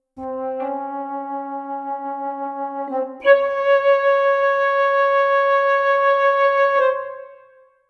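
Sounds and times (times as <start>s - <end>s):
flute: 0.2s - 7.8s.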